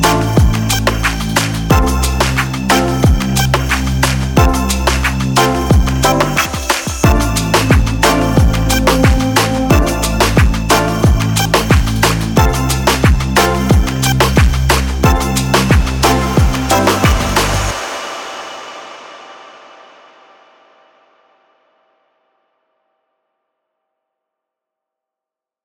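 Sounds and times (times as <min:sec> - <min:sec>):
dreamy reggaeton: 0:00.0 - 0:18.6.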